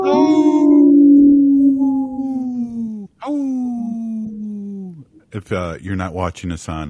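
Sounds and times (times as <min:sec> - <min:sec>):
person howling like a wolf: 0:00.0 - 0:04.4
speech: 0:05.4 - 0:06.8.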